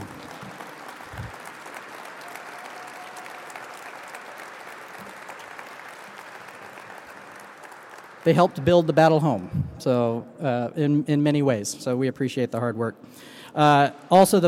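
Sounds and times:
audience applause: 0.0s - 9.5s
speech: 8.2s - 14.4s.

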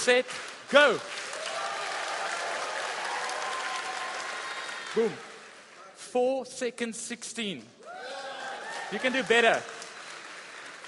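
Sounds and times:
speech: 0.0s - 1.2s, 5.0s - 5.3s, 6.1s - 7.8s, 8.9s - 9.8s
crowd clapping: 0.0s - 5.8s, 7.9s - 10.8s
crowd cheering: 0.8s - 5.8s, 7.8s - 10.8s.

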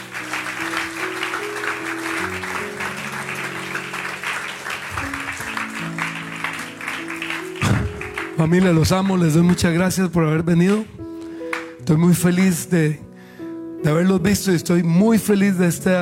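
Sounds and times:
audience applause: 0.0s - 9.8s
speech: 8.4s - 11.0s, 11.9s - 13.0s, 13.8s - 16.0s.

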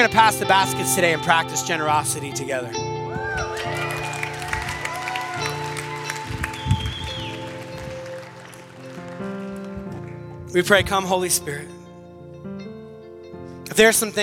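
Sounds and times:
speech: 0.0s - 3.8s, 10.5s - 11.7s, 13.8s - 14.2s
steady musical tones: 0.0s - 14.2s
scattered whoops and voices: 3.1s - 7.8s
crowd applauding: 3.1s - 10.5s.

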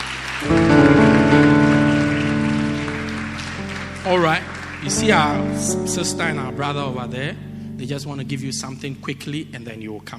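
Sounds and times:
audience clapping hands: 0.0s - 6.8s
speech: 0.4s - 0.7s, 4.1s - 10.1s.

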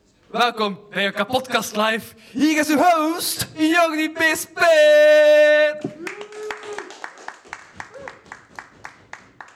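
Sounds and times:
speech: 0.3s - 6.2s
rhythmic clapping from a live podcast audience: 5.8s - 9.5s.

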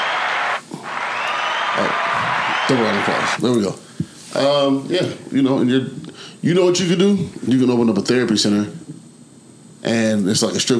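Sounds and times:
round of applause: 0.0s - 3.4s
speech: 2.7s - 8.8s, 9.8s - 10.7s.

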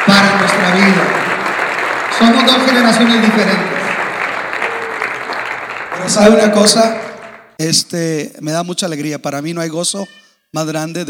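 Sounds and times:
audience applause: 0.0s - 7.5s
speech: 2.2s - 3.8s, 6.0s - 7.0s, 7.6s - 11.0s.

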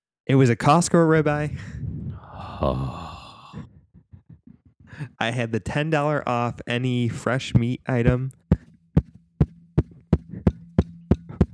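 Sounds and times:
speech: 0.3s - 1.8s, 2.6s - 3.1s, 5.0s - 8.4s
fist punching a microphone: 7.6s - 11.5s.

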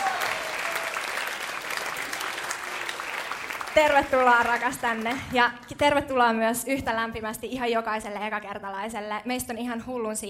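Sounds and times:
audience applause: 0.0s - 5.4s
speech: 3.8s - 10.2s.

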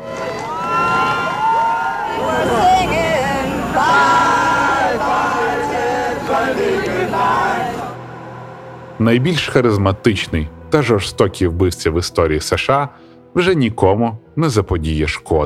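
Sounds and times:
large crowd cheering and shouting as hearse passes: 0.0s - 8.0s
speech: 9.0s - 15.4s.

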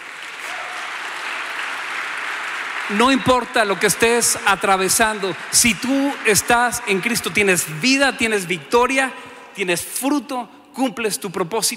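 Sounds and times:
audience applause: 0.0s - 7.8s
speech: 2.9s - 11.7s.

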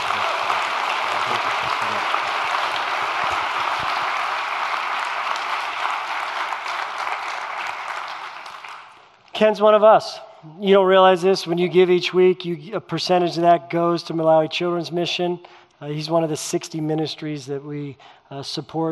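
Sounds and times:
audience applause: 0.0s - 9.1s
speech: 9.4s - 18.9s.

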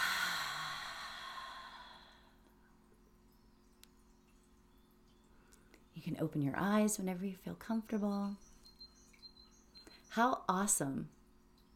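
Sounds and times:
deep breath exhaled through the mouth: 0.0s - 2.4s
speech: 6.0s - 8.5s, 10.2s - 11.2s.

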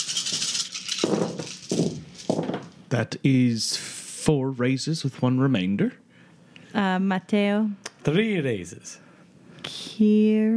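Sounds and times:
dice rattling and clattering across a surface: 0.0s - 2.8s
speech: 2.9s - 6.0s, 6.8s - 9.0s, 10.0s - 10.5s.

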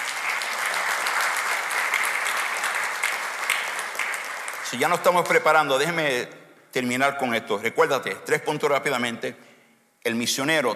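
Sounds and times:
loud audience applause: 0.0s - 5.4s
speech: 4.7s - 9.4s, 10.0s - 10.7s.

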